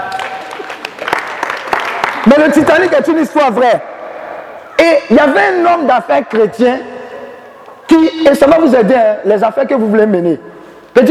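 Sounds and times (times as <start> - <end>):
congregation clapping at a church service: 0.0 - 2.8
speech: 2.3 - 3.9, 4.8 - 6.9, 7.9 - 11.0.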